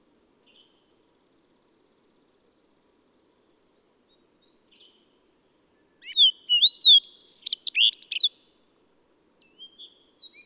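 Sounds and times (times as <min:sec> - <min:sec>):
bird song: 0:03.9 - 0:08.6, 0:09.4 - 0:10.4.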